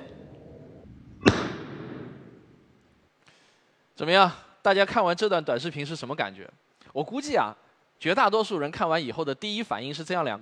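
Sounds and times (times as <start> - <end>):
low hum: 0.0 - 2.9
balloon popped by orange peel juice: 1.2 - 2.4
speech: 4.0 - 10.3.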